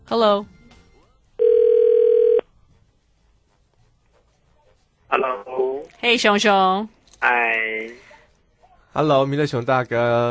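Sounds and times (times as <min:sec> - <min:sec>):
speech: 0:00.1 - 0:00.6, 0:05.1 - 0:08.1, 0:09.0 - 0:10.3
telephone ringing tone while placing call: 0:01.4 - 0:02.4.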